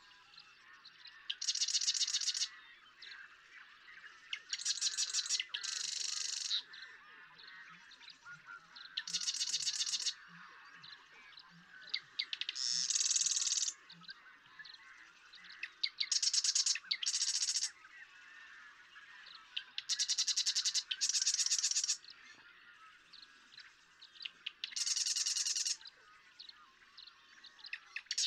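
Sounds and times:
other birds chirping and twittering: 0.0s - 28.2s
Marsh Wren song: 1.3s - 2.5s, 4.5s - 6.6s, 9.0s - 10.1s, 12.2s - 13.8s, 15.4s - 17.7s, 19.8s - 22.0s, 24.2s - 25.8s.

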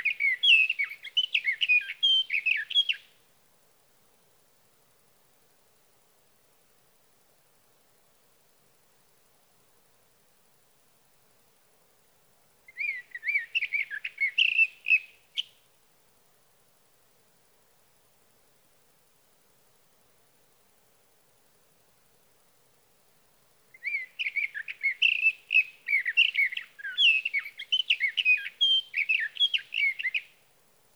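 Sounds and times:
sage thrasher: 0.0s - 3.0s, 12.7s - 15.5s, 23.8s - 30.4s.

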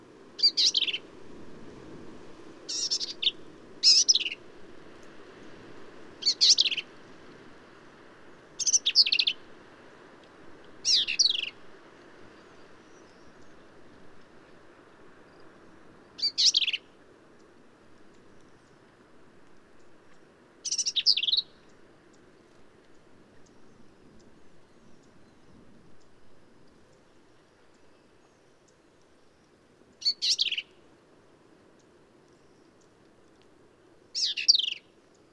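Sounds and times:
black-capped vireo harsh song: 0.4s - 1.0s, 2.7s - 4.4s, 6.2s - 6.8s, 8.6s - 9.4s, 10.8s - 11.6s, 16.2s - 16.9s, 20.6s - 21.7s, 30.0s - 30.7s, 34.2s - 34.9s.

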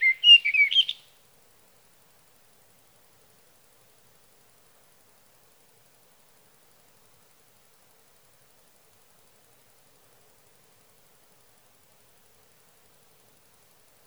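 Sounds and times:
sage thrasher: 0.0s - 1.0s.

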